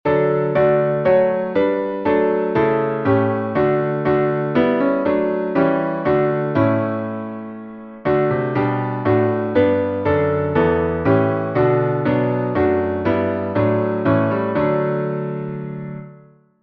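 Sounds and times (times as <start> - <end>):
instrumental music: 0.1 - 16.6.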